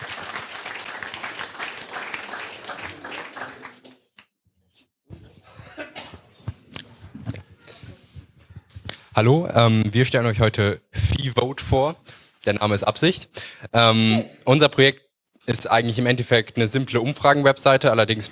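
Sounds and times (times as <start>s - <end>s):
applause: 0.0s - 4.2s
speech: 9.2s - 18.3s.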